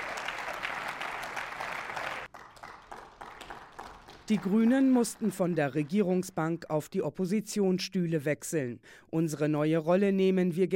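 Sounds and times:
large group applauding in a parliamentary chamber: 0:00.0 - 0:06.6
speech: 0:04.3 - 0:10.7.

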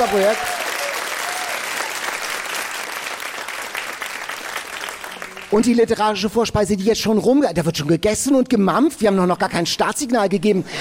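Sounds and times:
speech: 0:00.0 - 0:00.5, 0:05.5 - 0:10.7
audience applause: 0:00.0 - 0:05.7.

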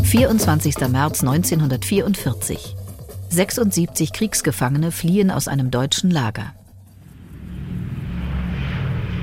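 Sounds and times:
speech: 0:00.1 - 0:02.8, 0:03.3 - 0:06.6
WWII bomber engine droning as it takes off from an airfield in southern England: 0:06.8 - 0:09.2.

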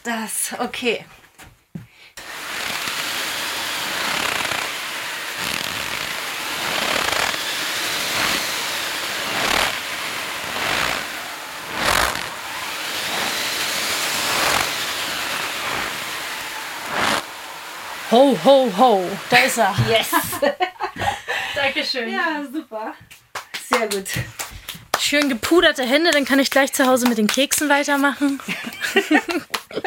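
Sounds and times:
speech: 0:00.0 - 0:01.5, 0:18.1 - 0:20.8, 0:21.6 - 0:23.2, 0:23.8 - 0:24.4, 0:25.1 - 0:29.8
wind machine rushing: 0:02.2 - 0:20.5
footsteps crunching in snow: 0:09.2 - 0:18.0
laughter: 0:19.8 - 0:21.6, 0:28.4 - 0:29.8.

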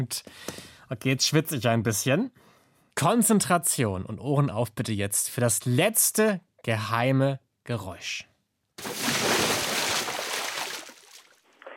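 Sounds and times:
speech: 0:00.0 - 0:08.3
person jumping into water: 0:08.8 - 0:11.4.

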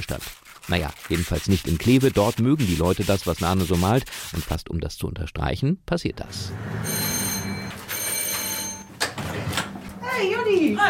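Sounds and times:
speech: 0:00.0 - 0:07.0, 0:10.2 - 0:10.8
doorbell ringing: 0:06.8 - 0:09.0.

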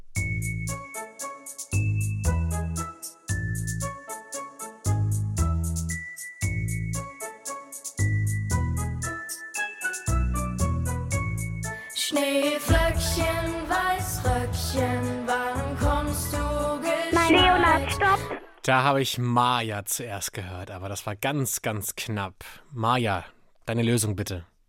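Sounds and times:
instrumental German children's winter song with bell-like melody over bass: 0:00.2 - 0:18.4
speech: 0:18.6 - 0:24.5.

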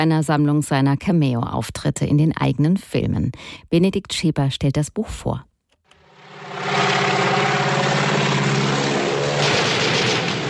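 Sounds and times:
speech: 0:00.0 - 0:05.5
grey-silver propeller plane flying low over an asphalt road: 0:06.0 - 0:10.4.

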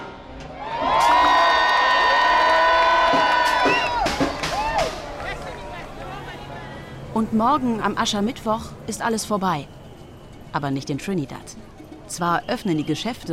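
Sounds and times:
enthusiastic crowd cheering at carnival: 0:00.4 - 0:07.0
speech: 0:07.3 - 0:09.8, 0:10.5 - 0:13.3.

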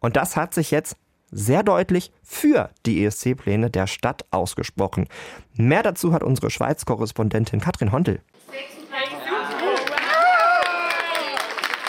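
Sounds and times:
speech: 0:00.0 - 0:08.8
cheering and applause in the Basel congress centre: 0:08.9 - 0:11.8.

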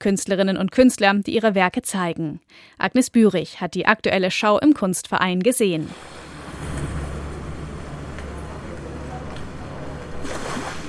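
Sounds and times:
speech: 0:00.0 - 0:06.2
sea waves sloshing and foaming on coast: 0:05.8 - 0:10.8.

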